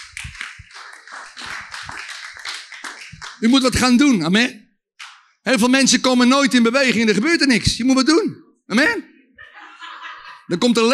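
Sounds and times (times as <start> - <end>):
audience applause: 0.0 - 3.7
speech: 3.4 - 4.6, 5.5 - 9.1, 10.5 - 10.9
laughter: 9.4 - 10.8.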